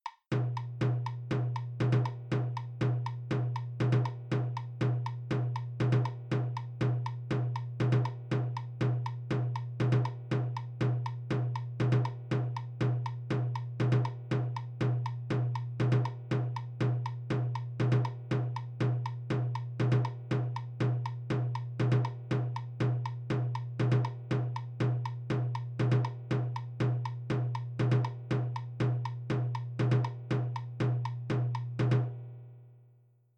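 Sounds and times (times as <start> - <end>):
isolated rhythm track: 0.1 - 31.7.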